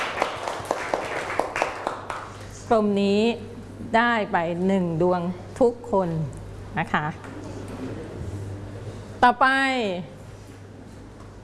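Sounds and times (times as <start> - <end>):
schoolchildren clapping for a classmate in class: 0.0 - 2.4
speech: 2.7 - 7.3, 9.2 - 10.2.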